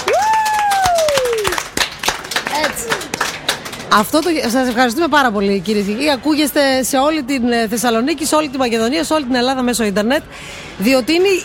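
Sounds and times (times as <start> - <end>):
whoop: 0.0 - 1.6
crowd applause: 0.0 - 4.3
gliding whistle or cheer: 0.1 - 1.5
speech: 3.9 - 11.4.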